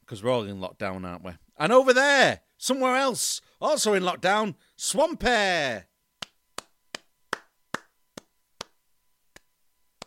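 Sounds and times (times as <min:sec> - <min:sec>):
speech: 0:00.1 - 0:05.9
hand clap: 0:06.2 - 0:10.0.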